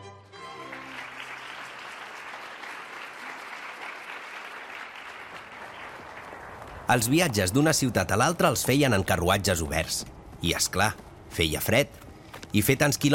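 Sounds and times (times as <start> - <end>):
large crowd applauding loudly: 0.6 - 8.3
speech: 6.9 - 13.1.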